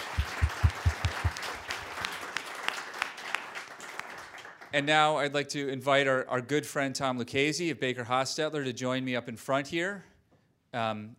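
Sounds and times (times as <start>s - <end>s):
audience applause: 0.0s - 4.6s
speech: 4.7s - 10.1s, 10.7s - 11.1s.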